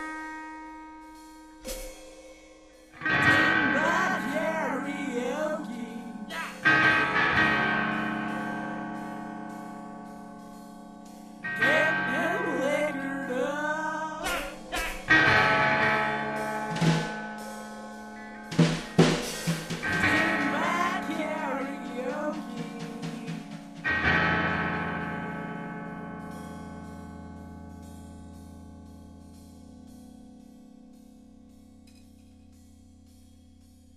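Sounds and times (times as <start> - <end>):
karaoke singing: 3.0 - 9.5, 11.5 - 25.7.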